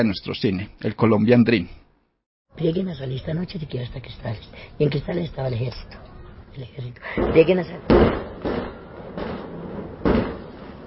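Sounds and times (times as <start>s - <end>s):
speech: 0.0s - 1.8s, 2.6s - 8.7s
gunshots: 7.2s - 10.8s.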